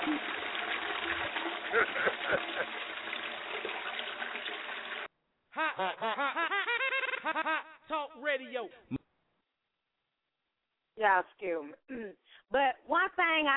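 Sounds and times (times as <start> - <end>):
toilet flushing: 0.0 - 5.1
laughter: 1.6 - 2.9, 5.6 - 7.9
speech: 1.7 - 2.1, 11.0 - 13.5.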